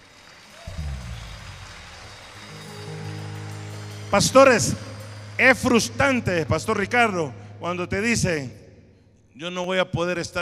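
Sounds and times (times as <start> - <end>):
audience applauding: 0.0 - 7.2
low sustained musical tones: 0.2 - 8.9
speech: 4.1 - 8.6, 9.4 - 10.3.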